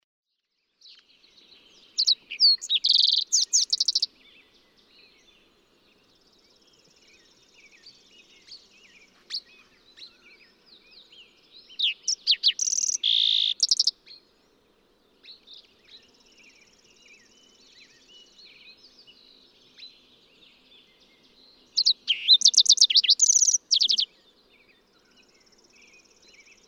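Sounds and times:
fox sparrow singing: 0.9 - 5.4, 6.5 - 14.2, 15.2 - 24.2.

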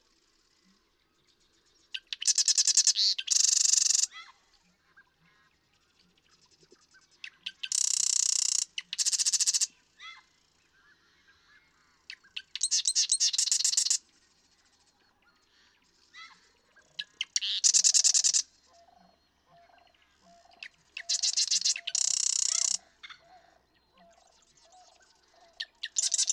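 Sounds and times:
Marsh Wren rattling song: 2.0 - 4.1, 7.2 - 9.7, 12.2 - 14.0, 17.0 - 18.5, 20.4 - 22.9, 25.8 - 26.3.

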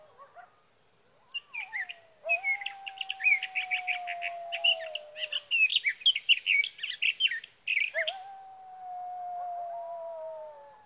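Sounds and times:
sage thrasher warbled song: 1.2 - 8.3.

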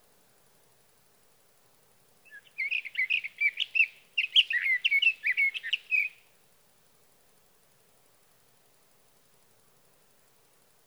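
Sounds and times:
sage thrasher song: 2.3 - 6.1.

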